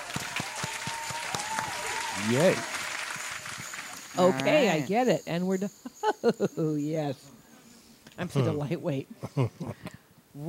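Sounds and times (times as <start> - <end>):
hand claps: 0.0 - 4.7
speech: 2.2 - 2.7, 4.2 - 7.4, 8.2 - 10.4
low hiss: 4.0 - 10.4.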